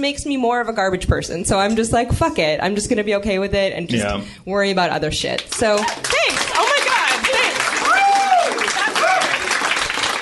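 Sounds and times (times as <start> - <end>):
speech: 0.0 - 6.4
comedy show audience applause: 5.5 - 10.2.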